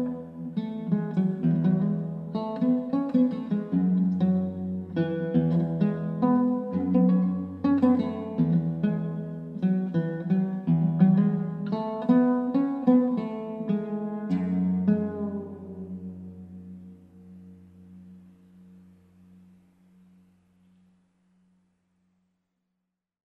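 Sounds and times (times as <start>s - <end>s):
oud playing: 0.0s - 21.0s.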